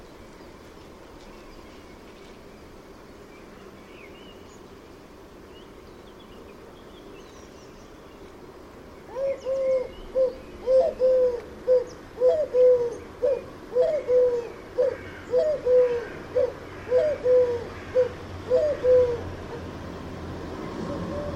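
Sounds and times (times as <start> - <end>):
bird calling with mellow cooing notes: 9.1 - 19.7, 20.8 - 21.3.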